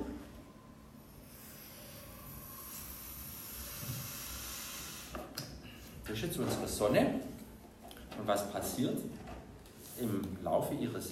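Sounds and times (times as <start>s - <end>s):
blowing up a balloon: 1.2s - 5.3s
speech: 6.1s - 7.3s, 8.3s - 9.2s, 10.0s - 11.1s.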